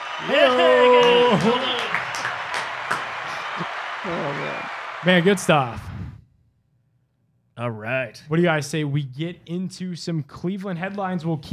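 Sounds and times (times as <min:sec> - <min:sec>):
applause sound effect from button: 0:00.0 - 0:05.9
speech: 0:00.2 - 0:01.7, 0:05.0 - 0:05.9, 0:07.6 - 0:11.5.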